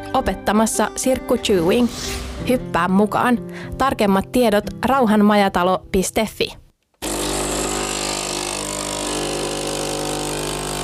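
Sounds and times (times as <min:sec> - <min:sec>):
speech: 0:00.2 - 0:06.6
typical espresso maker brewing: 0:07.0 - 0:10.8.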